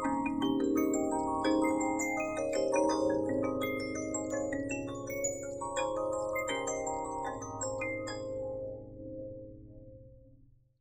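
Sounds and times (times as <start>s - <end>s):
music box: 0.0s - 8.5s.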